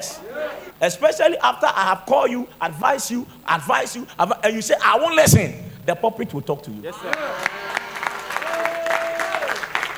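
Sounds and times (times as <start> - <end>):
speech: 0.0 - 7.5
audience clapping: 7.0 - 9.9.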